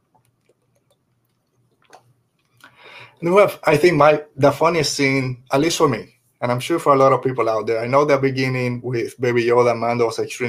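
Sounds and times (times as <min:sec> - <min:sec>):
sipping water: 0:00.0 - 0:03.3
speech: 0:03.2 - 0:10.4.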